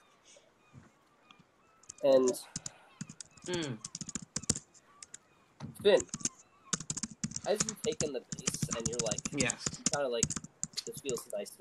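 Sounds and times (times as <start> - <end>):
aggressive typing on a computer keyboard: 1.8 - 5.2, 5.9 - 11.4
speech: 2.0 - 2.6, 3.4 - 3.9, 5.7 - 6.2, 7.4 - 11.6.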